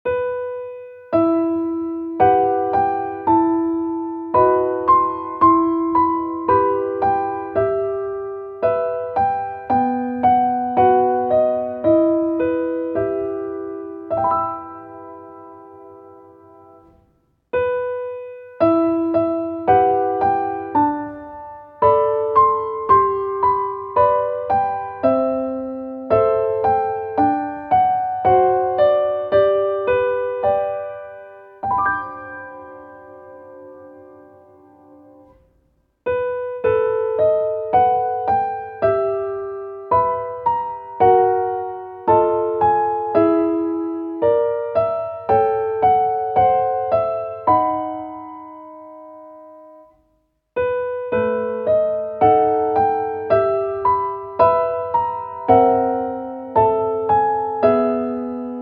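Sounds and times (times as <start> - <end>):
piano: 0.0 - 58.6.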